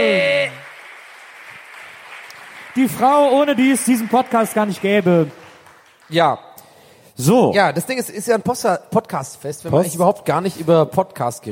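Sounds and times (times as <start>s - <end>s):
live audience applause: 0.0s - 6.2s
speech: 2.8s - 5.4s, 6.1s - 6.5s, 7.2s - 11.5s.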